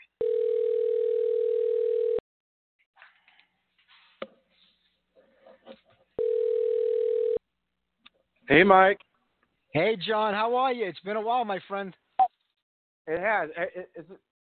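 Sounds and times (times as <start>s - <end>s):
telephone dial tone while dialling a call: 0.2s - 2.2s, 6.2s - 7.4s
speech: 8.5s - 9.1s, 9.7s - 12.0s, 13.1s - 14.3s.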